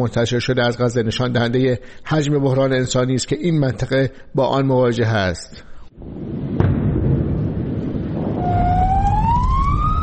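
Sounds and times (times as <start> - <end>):
speech: 0.0 - 6.5
constant heavy low rumble: 6.0 - 10.0
sharp thud: 6.5 - 8.4
ambulance siren: 8.4 - 10.0.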